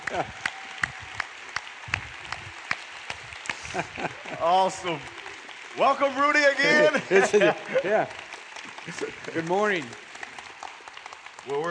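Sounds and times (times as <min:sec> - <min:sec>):
laughter: 0:00.0 - 0:00.5, 0:03.5 - 0:05.1, 0:06.5 - 0:09.8
church congregation applauding a guest speaker: 0:00.0 - 0:11.6
speech: 0:00.1 - 0:00.9, 0:03.7 - 0:05.2, 0:05.8 - 0:08.2, 0:08.8 - 0:10.0, 0:11.4 - 0:11.6.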